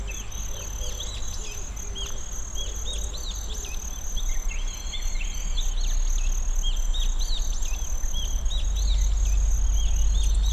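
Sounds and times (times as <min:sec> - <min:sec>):
Kinhibari crickets trilling in Tsuruoka: 0:00.0 - 0:10.5.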